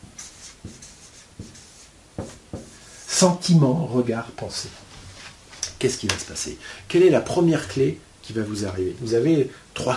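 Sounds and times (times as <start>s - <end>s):
soft hiss: 0.0s - 9.9s
handwriting scratches: 0.1s - 2.8s
speech: 3.2s - 4.8s, 5.8s - 9.9s.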